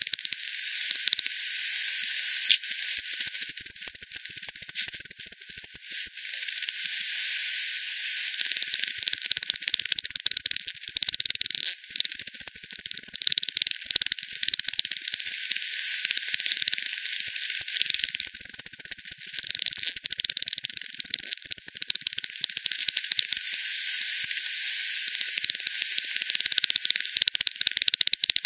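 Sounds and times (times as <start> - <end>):
bat echolocation clicks: 0.0 - 1.4, 2.0 - 7.1, 8.3 - 28.4
soft hiss: 0.2 - 3.2, 5.9 - 8.7, 22.5 - 26.7.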